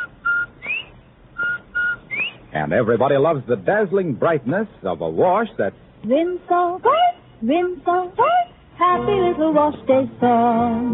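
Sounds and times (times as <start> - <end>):
Bob White cheery whistle: 0.0 - 2.4
speech: 2.6 - 10.9.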